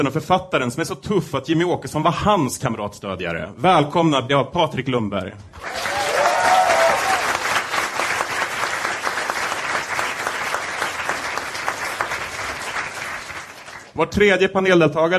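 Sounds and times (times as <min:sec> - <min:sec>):
speech: 0:00.0 - 0:06.0, 0:14.0 - 0:15.1
audience applause: 0:05.6 - 0:14.0.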